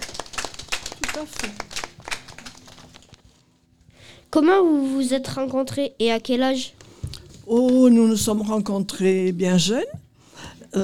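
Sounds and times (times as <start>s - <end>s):
audience applauding: 0.0s - 3.2s
speech: 1.2s - 1.9s, 4.3s - 6.8s, 7.5s - 10.0s.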